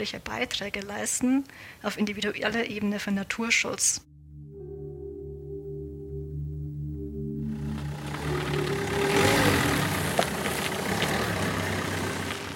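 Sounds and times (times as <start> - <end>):
speech: 0.0 - 4.1
vehicle engine of a livestock farmer driving by a port on the German–Polish border: 6.9 - 12.5
road noise: 7.2 - 12.5.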